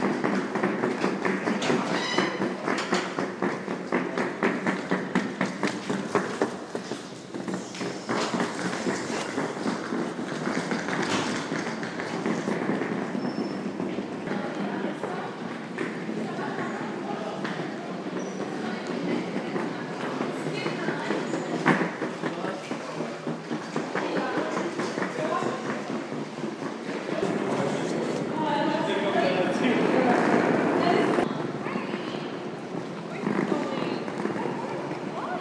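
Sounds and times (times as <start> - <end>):
Gare Centrale train station ambience: 0.0 - 35.3.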